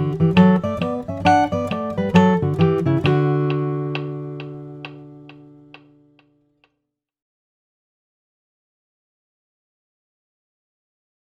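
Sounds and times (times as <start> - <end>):
flatpicked guitar: 0.0 - 6.6.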